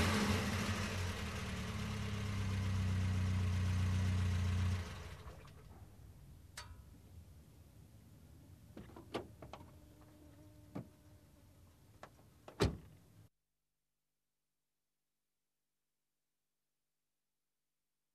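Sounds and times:
car approaching: 0:00.0 - 0:06.4.

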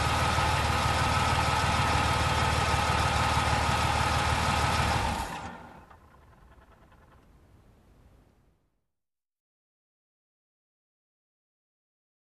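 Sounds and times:
truck approaching and parking: 0:00.0 - 0:08.6.

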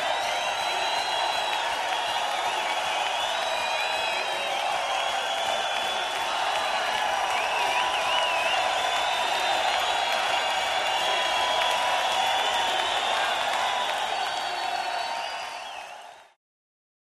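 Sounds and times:
crowd cheering: 0:00.0 - 0:16.4.

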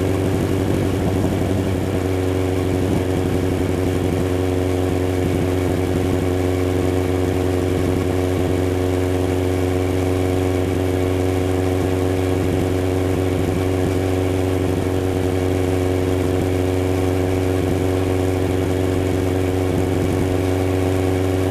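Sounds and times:
motorcycle engine: 0:00.0 - 0:21.4.

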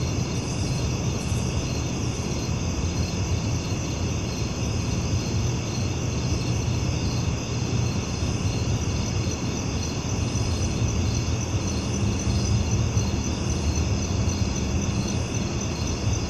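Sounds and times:
cricket chorus trilling at night: 0:00.0 - 0:16.2.

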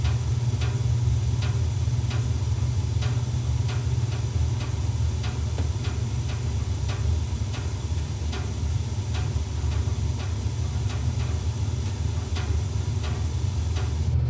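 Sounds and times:
small industrial machine switching on: 0:00.0 - 0:14.2.

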